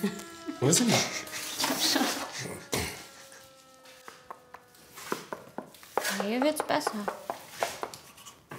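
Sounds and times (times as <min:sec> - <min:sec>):
speech: 0:00.0 - 0:01.3, 0:06.3 - 0:07.3
tapping clay plaster to test hollowness: 0:05.2 - 0:08.0.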